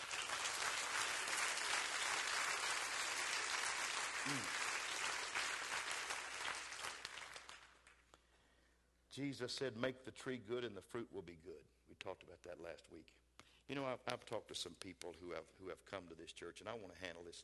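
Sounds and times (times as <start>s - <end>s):
crowd clapping: 0.0s - 8.0s
speech: 9.2s - 17.4s.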